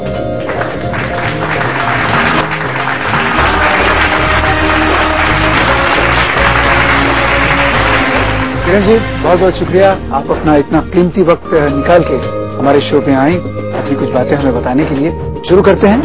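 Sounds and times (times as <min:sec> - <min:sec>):
audience applause: 0:00.0 - 0:09.0
music: 0:00.0 - 0:16.0
speech: 0:08.8 - 0:16.0.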